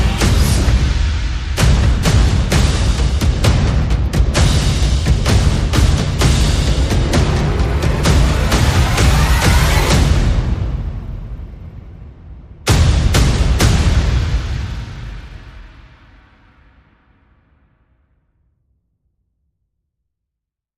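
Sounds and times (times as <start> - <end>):
percussion: 0.0 - 17.5
sound effects: 6.2 - 11.0.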